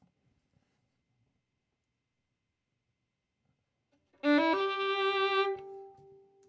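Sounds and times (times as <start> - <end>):
violin: 4.2 - 6.3.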